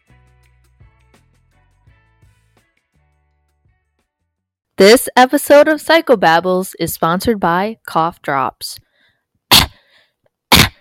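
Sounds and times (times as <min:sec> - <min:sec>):
speech: 0:04.8 - 0:08.8
throat clearing: 0:09.5 - 0:09.8, 0:10.5 - 0:10.7.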